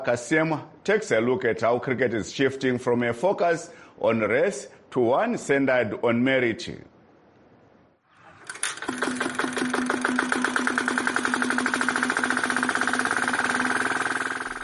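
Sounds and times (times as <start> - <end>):
speech: 0.0 - 6.9
small engine on a pitch roller chugging: 8.8 - 14.6.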